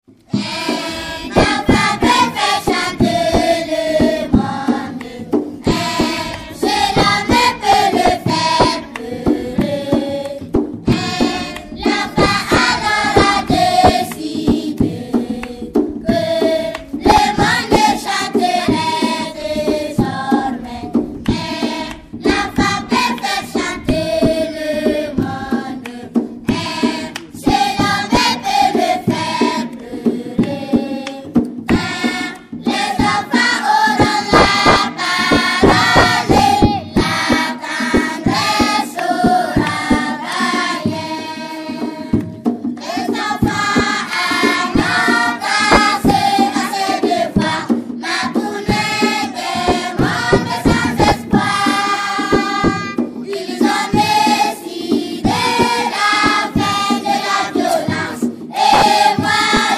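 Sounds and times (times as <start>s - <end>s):
children singing: 0.3s - 42.2s, 42.8s - 59.7s.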